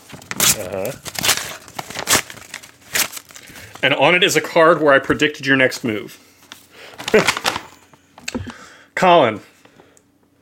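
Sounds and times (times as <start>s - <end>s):
sealed paper envelope being torn open: 0.0s - 3.8s, 7.0s - 7.8s
speech: 0.6s - 1.2s, 3.8s - 6.2s, 7.1s - 7.4s, 9.0s - 9.5s.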